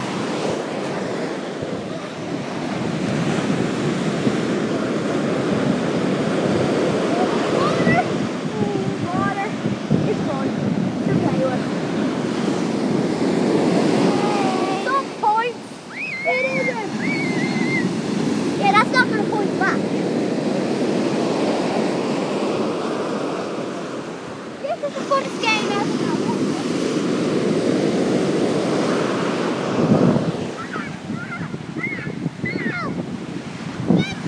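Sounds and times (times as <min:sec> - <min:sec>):
waves at Dunquin: 0:00.0 - 0:34.2.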